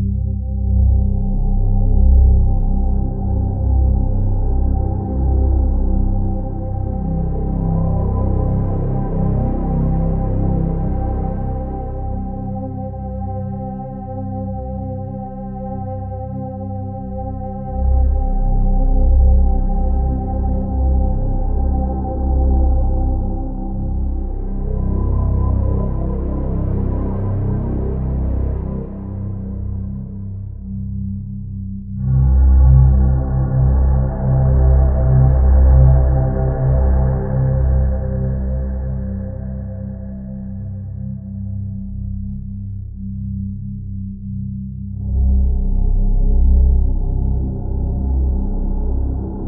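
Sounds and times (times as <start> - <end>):
drone: 0.1 - 49.4.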